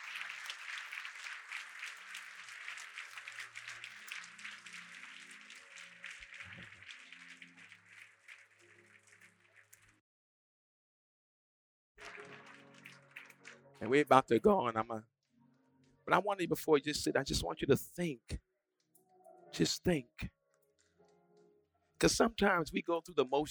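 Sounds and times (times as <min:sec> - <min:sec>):
large crowd clapping in praise: 0:00.0 - 0:10.0, 0:12.0 - 0:14.8
speech: 0:13.8 - 0:15.1, 0:16.1 - 0:18.4, 0:19.6 - 0:20.4, 0:22.0 - 0:23.4.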